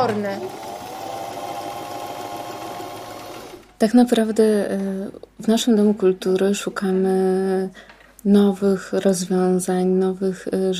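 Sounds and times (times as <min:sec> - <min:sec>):
speech: 0:00.0 - 0:00.7, 0:03.8 - 0:10.7
sewing machine stitching waterproof fabric: 0:00.0 - 0:03.8.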